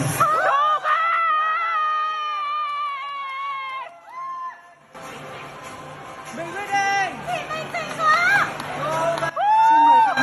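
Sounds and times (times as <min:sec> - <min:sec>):
crowd cheering at a graduation ceremony: 0:00.2 - 0:04.8, 0:07.3 - 0:10.2.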